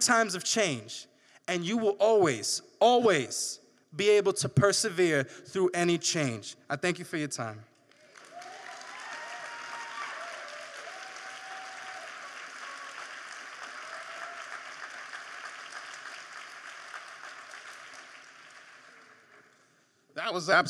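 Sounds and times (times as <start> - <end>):
speech: 0.0 - 7.7, 20.3 - 20.6
audience applause: 7.9 - 19.6.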